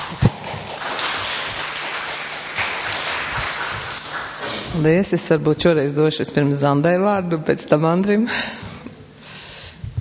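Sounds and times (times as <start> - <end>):
group applauding in approval: 0.0 - 4.8
speech: 4.8 - 8.7.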